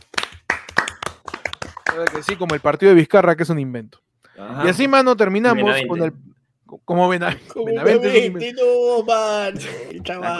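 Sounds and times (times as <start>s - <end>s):
few people clapping: 0.0s - 2.9s
speech: 2.0s - 10.3s.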